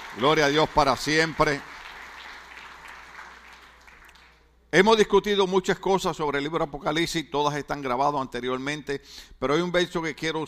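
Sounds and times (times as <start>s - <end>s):
audience applause: 0.0s - 4.4s
speech: 0.2s - 1.7s, 4.7s - 10.4s.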